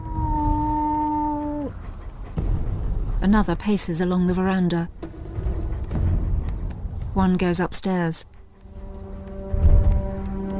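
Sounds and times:
dog howling in the bushes outside a house at night: 0.0s - 2.3s
quiet low rumbling: 0.0s - 10.5s
speech: 3.2s - 5.0s, 7.2s - 8.4s.

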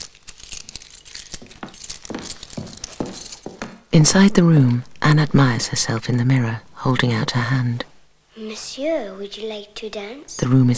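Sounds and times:
keys jingling: 0.0s - 3.9s
speech: 4.0s - 7.9s, 8.5s - 10.7s.

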